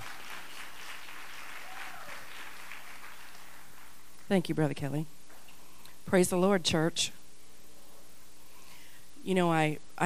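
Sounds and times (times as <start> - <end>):
audience clapping: 0.0 - 4.3
speech: 4.3 - 5.2, 6.1 - 7.2, 9.2 - 10.0.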